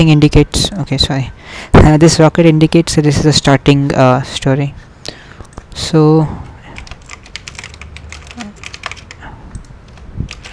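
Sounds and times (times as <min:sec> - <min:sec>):
speech: 0:00.0 - 0:04.9, 0:05.8 - 0:06.4
rapid typing on a computer keyboard: 0:06.7 - 0:10.5.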